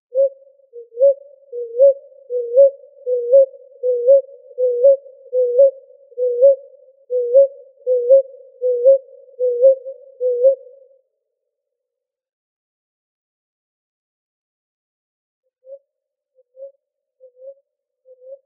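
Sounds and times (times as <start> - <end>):
ruddy ground dove cooing in Arizona: 0.1 - 10.9.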